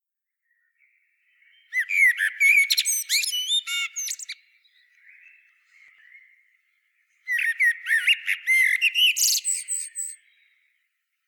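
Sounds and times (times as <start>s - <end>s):
common blackbird singing: 1.3s - 6.4s, 7.2s - 10.8s.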